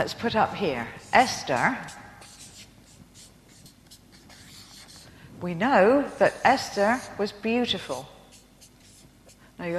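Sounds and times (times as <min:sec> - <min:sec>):
speech: 0:00.0 - 0:02.0, 0:05.4 - 0:08.1, 0:09.6 - 0:09.7
chalk or marker scratching across a board: 0:00.9 - 0:05.1, 0:06.2 - 0:09.7.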